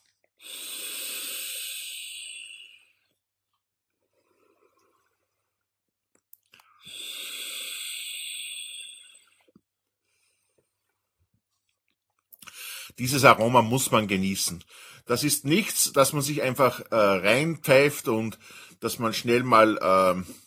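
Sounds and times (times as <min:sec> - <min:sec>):
person vaping an e-cigarette, inhaling and exhaling vapor: 0:00.4 - 0:03.2, 0:04.0 - 0:05.4, 0:06.5 - 0:11.0
speech: 0:13.0 - 0:20.4.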